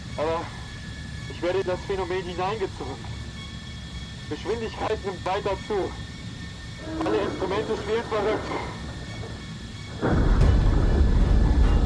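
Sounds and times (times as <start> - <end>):
speech: 1.4 - 3.2, 4.3 - 6.1, 6.8 - 8.8, 10.0 - 10.3
explosion: 10.0 - 11.8.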